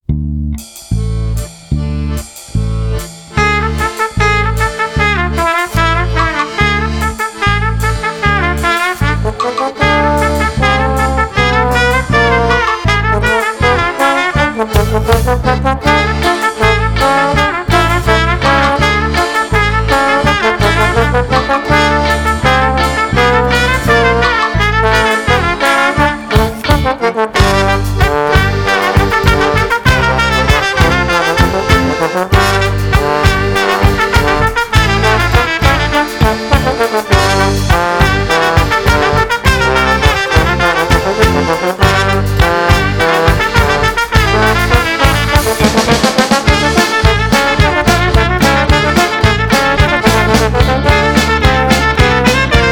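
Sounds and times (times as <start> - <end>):
Ukrainian folk punk music: 0.0 - 52.7.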